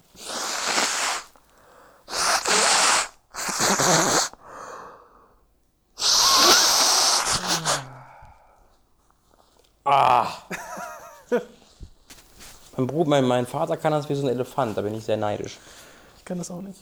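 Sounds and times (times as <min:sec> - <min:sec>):
person snorting forcefully through the nose: 0:00.1 - 0:01.4, 0:02.1 - 0:04.4, 0:06.0 - 0:08.2
fainter breathy puffs: 0:00.1 - 0:05.3, 0:06.0 - 0:08.7
laughter: 0:10.5 - 0:11.5
speech: 0:12.8 - 0:16.8.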